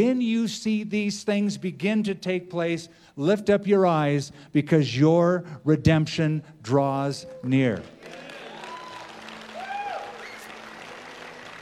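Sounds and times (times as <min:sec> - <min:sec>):
speech: 0:00.0 - 0:08.2
crowd clapping: 0:07.4 - 0:11.6.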